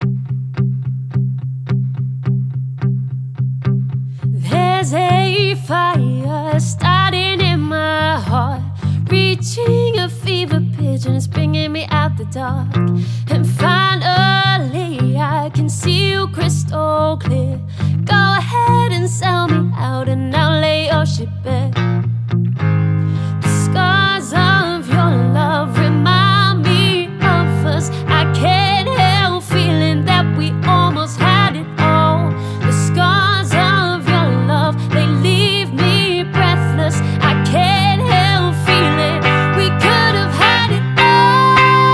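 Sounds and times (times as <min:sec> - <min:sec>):
acoustic music: 0:00.0 - 0:41.9.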